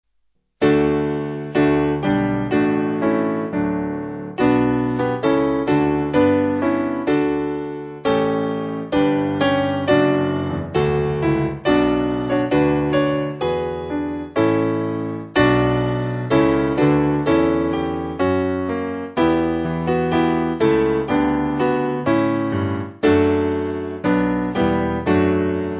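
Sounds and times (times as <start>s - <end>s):
piano backing music for churches: 0.6s - 25.7s.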